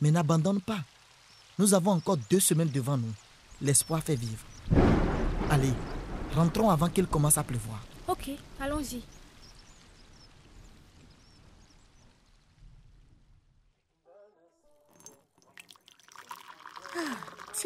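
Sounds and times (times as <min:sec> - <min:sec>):
speech: 0:00.0 - 0:01.0, 0:01.6 - 0:09.2
noise: 0:00.0 - 0:17.6
tea being poured into a cup: 0:14.8 - 0:17.6.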